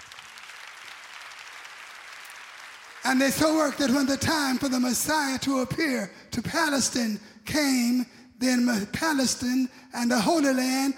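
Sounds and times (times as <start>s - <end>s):
audience clapping: 0.0s - 5.4s
speech: 3.0s - 10.9s.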